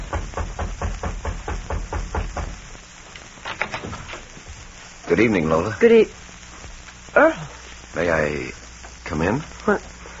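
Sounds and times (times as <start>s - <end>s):
knuckles knocking on a wooden door: 0.0s - 2.6s
speech: 5.1s - 6.2s, 8.0s - 9.9s.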